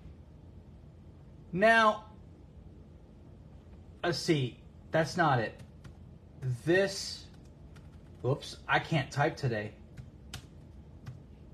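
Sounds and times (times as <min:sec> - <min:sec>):
speech: 0:01.5 - 0:02.1, 0:04.0 - 0:05.6, 0:06.4 - 0:07.2, 0:08.2 - 0:09.8
typing on a computer keyboard: 0:05.5 - 0:06.0, 0:07.3 - 0:08.4, 0:09.9 - 0:11.5.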